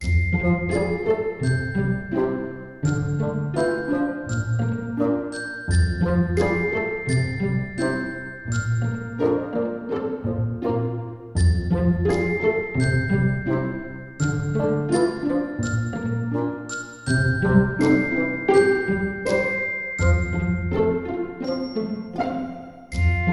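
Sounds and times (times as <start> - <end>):
whimsical nature music: 0.0 - 23.3.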